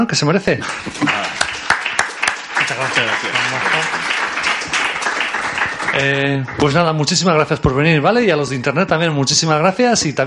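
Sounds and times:
speech: 0:00.0 - 0:01.4, 0:02.7 - 0:04.2, 0:06.0 - 0:10.2
audience applause: 0:00.6 - 0:07.4.

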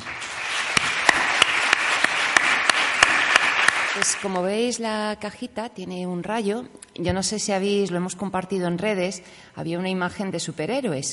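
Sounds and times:
audience applause: 0:00.0 - 0:04.4
speech: 0:04.0 - 0:11.1.

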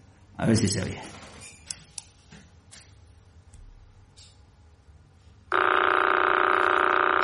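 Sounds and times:
speech: 0:00.4 - 0:01.2
Crab pulsar periodic signal played as audio: 0:05.5 - 0:07.2.

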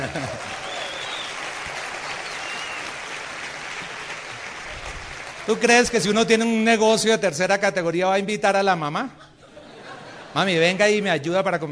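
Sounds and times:
laughter: 0:00.0 - 0:00.8, 0:09.2 - 0:11.0
audience applause: 0:00.0 - 0:06.2
speech: 0:05.5 - 0:09.2, 0:10.3 - 0:11.7.

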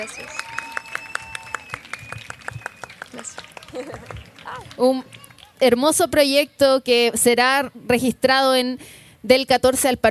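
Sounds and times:
speech: 0:00.0 - 0:00.6, 0:03.1 - 0:10.0
audience applause: 0:00.0 - 0:05.6.

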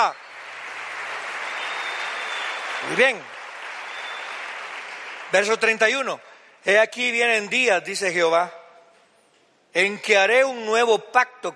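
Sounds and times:
speech: 0:00.0 - 0:00.2, 0:02.8 - 0:03.4, 0:05.3 - 0:08.6, 0:09.7 - 0:11.5
audience applauding loudly: 0:00.0 - 0:06.5.

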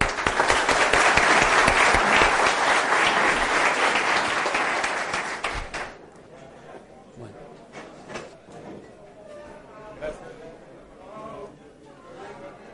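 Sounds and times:
audience applause: 0:00.0 - 0:06.0.

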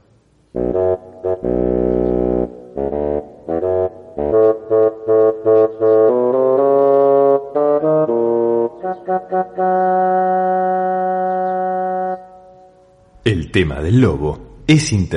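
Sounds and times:
solo bassoon melody: 0:00.5 - 0:13.2
speech: 0:13.5 - 0:15.1.

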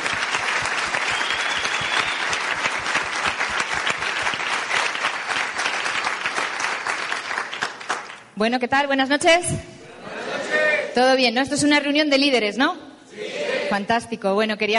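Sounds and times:
loud applause from a large audience: 0:00.0 - 0:08.3
speech: 0:08.4 - 0:09.7, 0:11.0 - 0:14.7.

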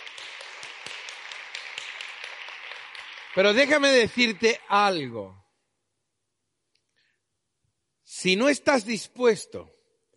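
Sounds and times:
audience applause: 0:00.0 - 0:05.0
speech: 0:03.4 - 0:05.4, 0:08.2 - 0:09.8.

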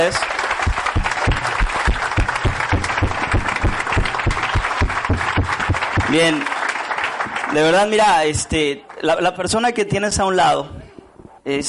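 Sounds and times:
speech: 0:00.0 - 0:01.1, 0:06.1 - 0:06.6, 0:07.5 - 0:10.8, 0:11.4 - 0:11.6
audience applause: 0:00.0 - 0:08.3.

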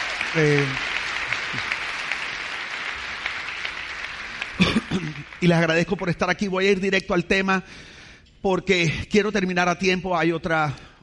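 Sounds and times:
audience applause: 0:00.0 - 0:06.2
speech: 0:00.4 - 0:00.9, 0:01.5 - 0:01.7, 0:05.0 - 0:10.9.

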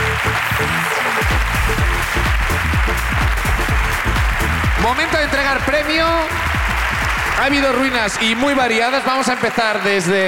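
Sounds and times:
crowd applause: 0:00.0 - 0:10.2
speech: 0:04.9 - 0:06.5, 0:07.4 - 0:10.2.

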